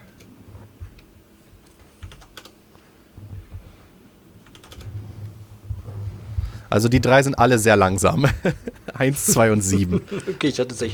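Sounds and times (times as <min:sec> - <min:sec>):
typing a dice roll command on a computer keyboard: 0:01.7 - 0:02.6, 0:04.4 - 0:05.0
speech: 0:06.7 - 0:10.9
laughter: 0:08.0 - 0:10.9.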